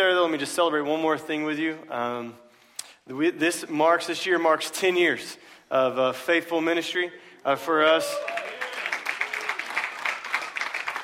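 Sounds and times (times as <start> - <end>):
speech: 0.3 - 2.4, 3.1 - 8.4
audience cheering and applause: 7.9 - 11.0.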